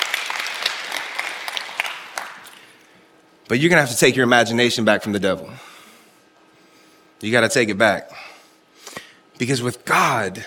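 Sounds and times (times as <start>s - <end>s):
audience clapping: 0.0s - 2.8s
speech: 3.5s - 5.7s, 7.2s - 8.3s, 9.4s - 10.4s.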